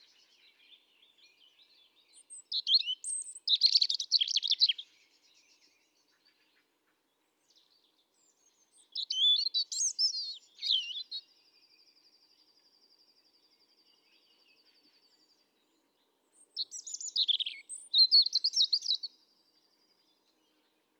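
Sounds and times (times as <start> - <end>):
European robin singing: 0.0 - 5.7, 8.2 - 12.4, 13.8 - 20.6.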